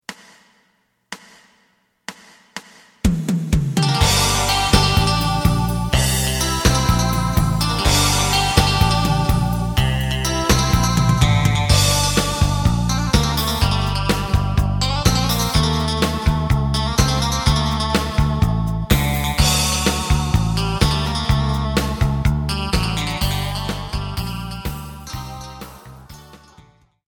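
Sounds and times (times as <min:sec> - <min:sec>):
side guitar: 0:03.1 - 0:26.8.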